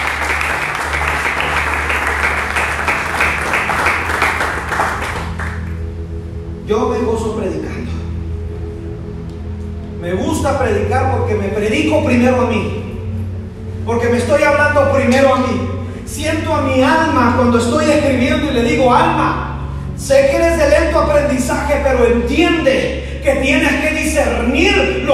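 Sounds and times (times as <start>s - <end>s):
audience applauding loudly: 0.0s - 5.8s
low hum: 0.0s - 25.1s
speech: 10.4s - 12.8s, 13.9s - 19.4s, 20.0s - 25.1s.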